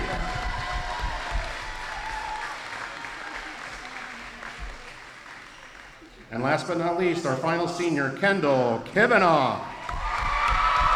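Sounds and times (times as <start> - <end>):
audience cheering: 0.0 - 5.0, 9.8 - 10.9
audience applause: 0.0 - 6.3, 9.8 - 10.9
speech: 6.3 - 9.7.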